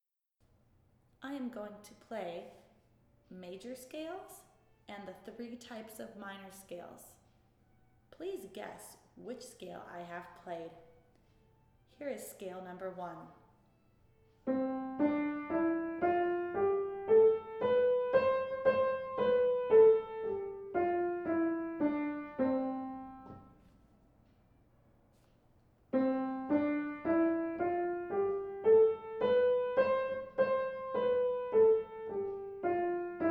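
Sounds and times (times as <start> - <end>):
major and minor scales for ear training: 14.4 - 23.6, 25.9 - 33.2.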